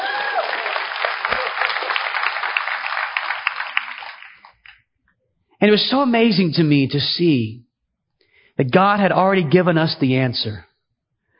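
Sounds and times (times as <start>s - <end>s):
audience applause: 0.0s - 4.7s
speech: 5.6s - 7.6s, 8.6s - 10.7s.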